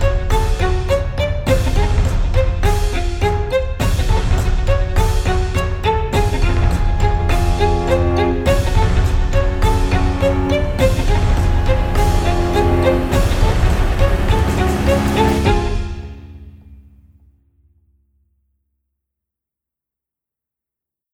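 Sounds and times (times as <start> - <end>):
reversed quirky strings: 0.0 - 16.8.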